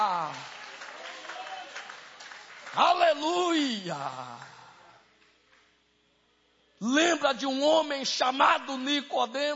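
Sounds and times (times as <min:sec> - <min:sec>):
audience applauding: 0:00.2 - 0:03.2
speech: 0:07.3 - 0:09.5.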